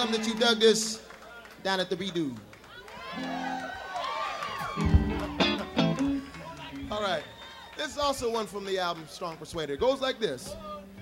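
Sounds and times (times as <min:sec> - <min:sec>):
crowd cheering and whooping: 0:00.0 - 0:00.8, 0:02.6 - 0:09.2
speech: 0:00.0 - 0:03.6, 0:07.0 - 0:10.9
crowd shouting: 0:02.7 - 0:08.0.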